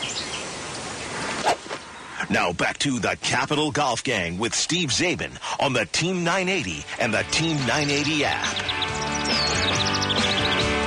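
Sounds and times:
birds chirping: 0.0 - 4.3, 6.0 - 10.8
speech: 2.3 - 8.8.

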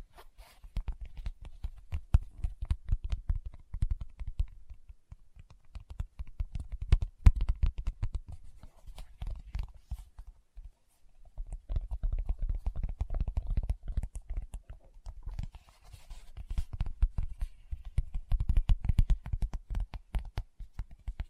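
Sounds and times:
fingertips tapping: 0.6 - 21.2.

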